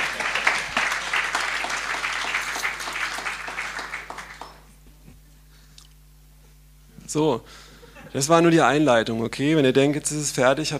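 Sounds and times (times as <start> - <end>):
audience applause: 0.0 - 4.7
speech: 7.1 - 10.7.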